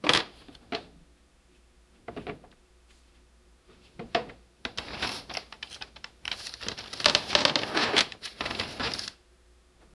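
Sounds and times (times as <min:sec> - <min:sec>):
rummaging through a work table: 0:03.7 - 0:09.2.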